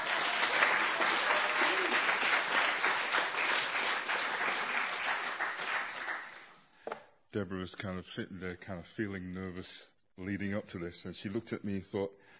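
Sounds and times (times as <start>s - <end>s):
audience applause: 0.0s - 6.5s
speech: 7.3s - 12.3s.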